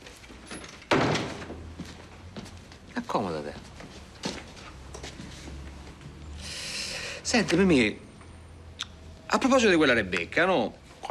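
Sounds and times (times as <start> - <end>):
door closing thud: 0.9 - 1.7
speech: 3.1 - 3.7, 7.3 - 8.0, 9.3 - 11.0.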